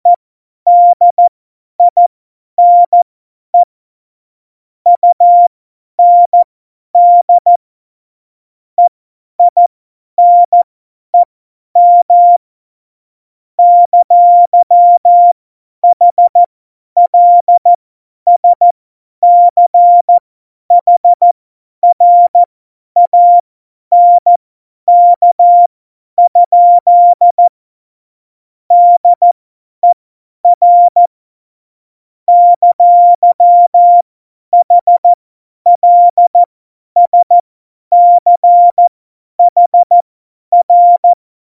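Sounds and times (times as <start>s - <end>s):
CW Morse code at tempo 70: 0.7s - 2.0s, 2.6s - 3.0s, 4.9s - 7.6s, 10.2s - 12.4s, 13.6s - 16.5s, 17.1s - 17.7s, 18.3s - 27.5s, 28.7s - 31.1s, 32.3s - 41.2s.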